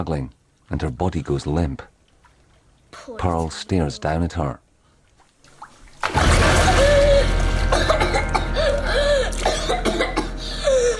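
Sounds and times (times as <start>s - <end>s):
speech: 0.0s - 1.9s, 2.9s - 4.6s
gasping for breath and coughing: 6.5s - 10.9s.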